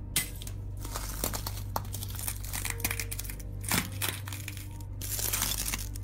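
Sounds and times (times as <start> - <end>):
stone pestle smashing a block of black rock: 0.2 - 6.0.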